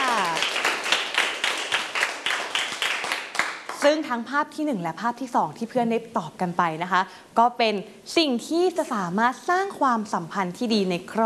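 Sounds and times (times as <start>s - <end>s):
classroom clapping for classmates in rhythm: 0.0s - 4.1s
speech: 3.8s - 11.2s.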